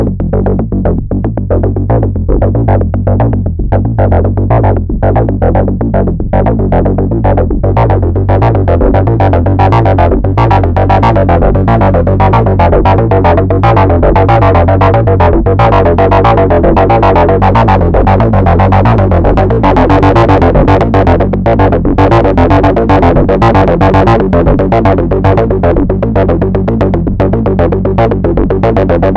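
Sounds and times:
MicroBrute synthesizer sequence with animated LFO: 0.2 - 29.1.

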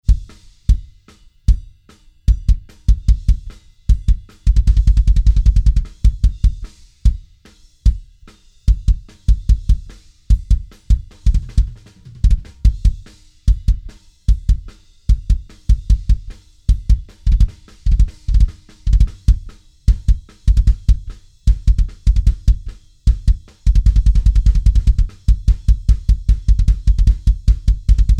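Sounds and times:
bass drum through Tube Tech PE1C equalizer, outside microphone: 0.0 - 28.1.

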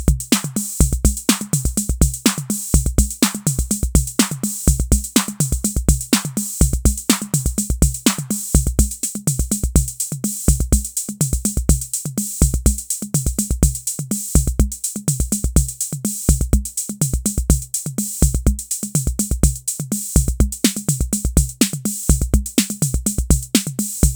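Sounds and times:
RD-6 drum machine electro beat: 0.0 - 24.1.

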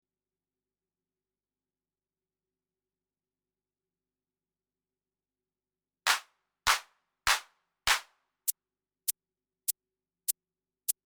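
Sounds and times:
maraca: 6.1 - 8.0
hand clap: 6.1 - 8.1.

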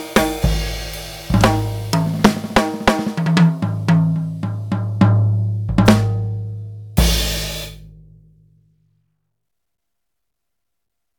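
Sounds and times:
drum kit: 0.0 - 8.2.

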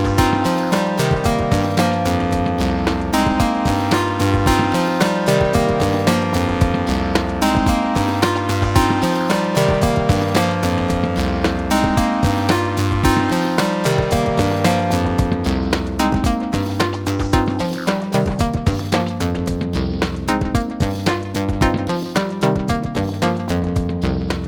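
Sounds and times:
synthesizer oscillator tone shaped by a filter envelope: 0.0 - 24.4.

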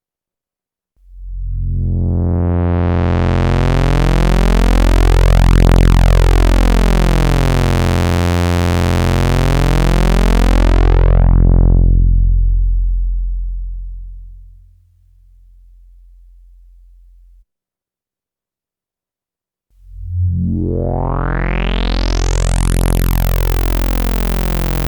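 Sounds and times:
synthesizer filter sweep with increasing resonance: 1.2 - 14.8, 19.9 - 24.8.

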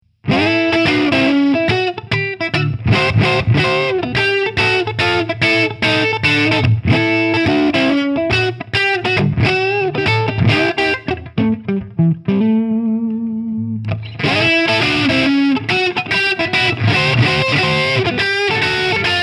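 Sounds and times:
electric guitar on Plexitone neck humbucker: 0.2 - 19.2.

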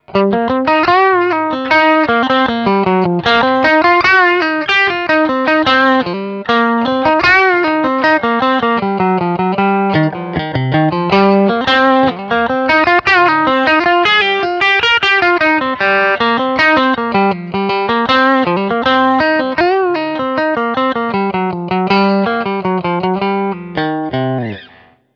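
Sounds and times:
guitar lick: 0.0 - 25.1.

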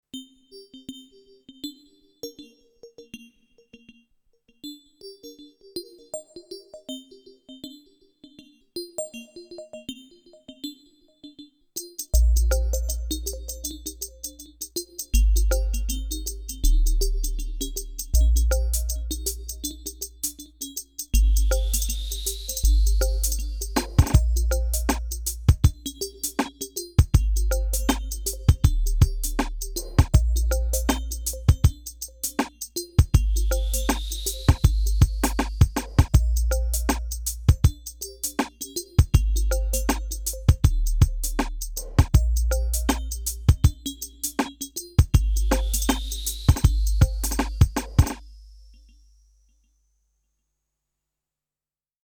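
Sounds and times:
Roland TR 8S drum machine pattern: 11.8 - 48.2.

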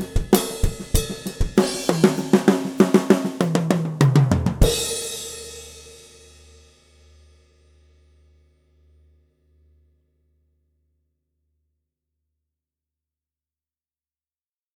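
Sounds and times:
Pearl Export drum kit with snares on, no effects: 0.0 - 6.9.

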